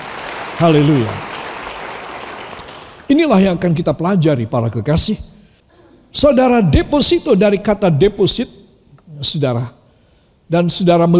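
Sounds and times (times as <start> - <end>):
audience applause: 0.0 - 3.1
speech: 0.6 - 1.3, 3.1 - 5.3, 6.1 - 9.8, 10.5 - 11.1.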